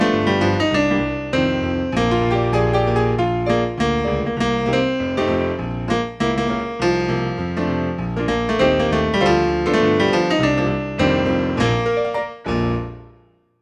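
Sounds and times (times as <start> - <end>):
tenor melody: 0.0 - 13.3.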